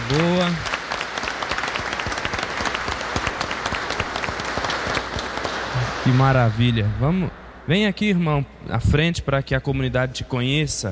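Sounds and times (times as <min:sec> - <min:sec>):
audience applause: 0:00.0 - 0:06.8
speech: 0:00.1 - 0:00.7, 0:06.0 - 0:10.9.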